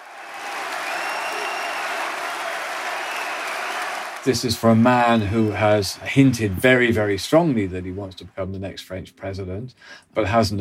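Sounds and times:
crowd cheering and clapping at a rally: 0:00.0 - 0:08.3
speech: 0:04.2 - 0:10.5.

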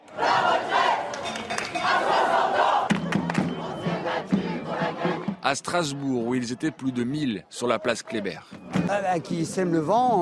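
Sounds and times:
protest crowd chanting slogans: 0:00.0 - 0:08.9
speech: 0:05.5 - 0:10.1.

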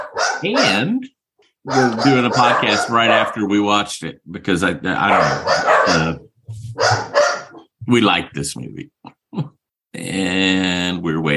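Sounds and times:
dogs barking: 0:00.0 - 0:01.0, 0:01.6 - 0:03.6, 0:05.0 - 0:07.7
speech: 0:00.4 - 0:06.2, 0:06.8 - 0:07.2, 0:07.9 - 0:11.3.

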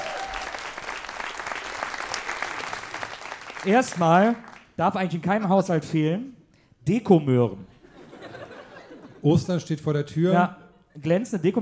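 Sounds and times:
audience applause: 0:00.0 - 0:04.7
speech: 0:03.6 - 0:07.8, 0:09.2 - 0:11.5
laughter: 0:07.8 - 0:09.3.

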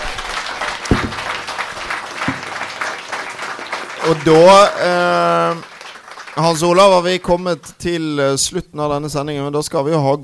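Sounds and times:
applause: 0:00.0 - 0:07.9
speech: 0:04.0 - 0:05.7, 0:06.4 - 0:10.2.

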